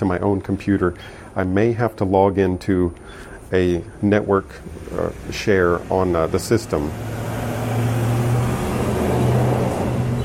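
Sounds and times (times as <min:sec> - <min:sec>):
speech: 0:00.0 - 0:08.0
truck passing outside with low steady engine drone and rumble: 0:03.8 - 0:10.2.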